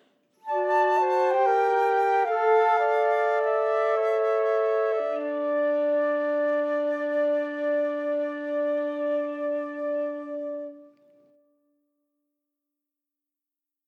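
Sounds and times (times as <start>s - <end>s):
chorale chamber music for 3 flutes: 0.4s - 11.2s.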